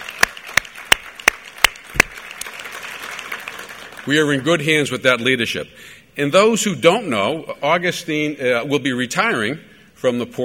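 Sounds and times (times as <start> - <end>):
sharp claps: 0.0 - 4.1
speech: 4.0 - 10.4.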